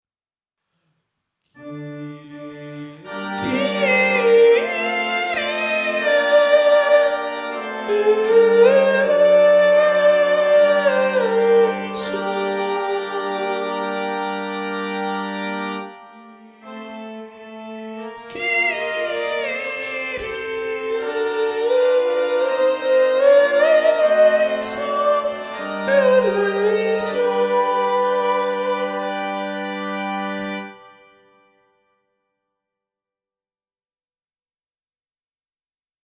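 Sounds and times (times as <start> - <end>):
sopranos singing a Kyrie: 1.6 - 14.4, 15.9 - 30.5.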